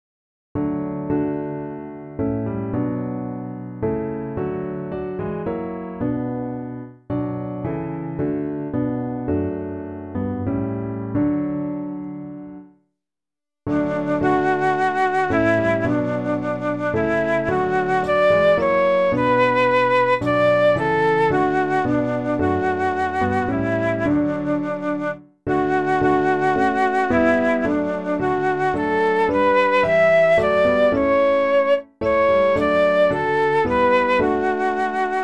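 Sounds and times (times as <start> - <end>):
piano ensemble: 0.6 - 12.7, 13.7 - 35.2.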